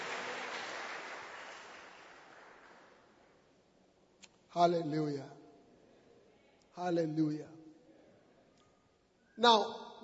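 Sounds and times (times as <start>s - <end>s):
audience clapping: 0.0s - 3.3s
speech: 4.6s - 5.4s, 6.8s - 7.6s, 9.4s - 10.0s.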